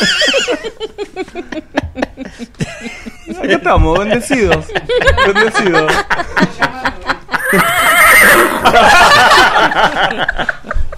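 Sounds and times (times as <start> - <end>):
laughter: 0.0 - 10.9
speech: 3.5 - 6.7, 9.8 - 10.7
horse whinnying: 7.4 - 8.7.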